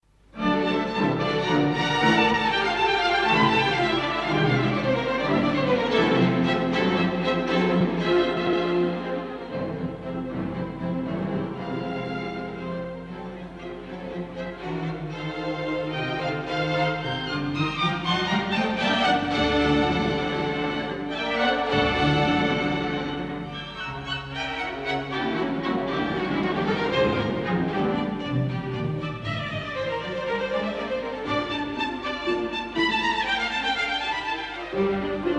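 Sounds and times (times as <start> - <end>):
strings playing a prelude: 0.4 - 35.3.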